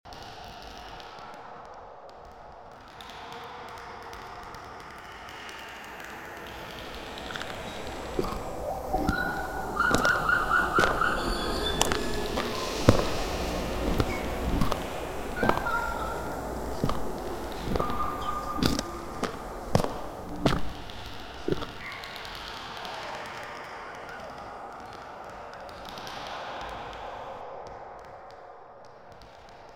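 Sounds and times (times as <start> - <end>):
monster: 6.6 - 26.3.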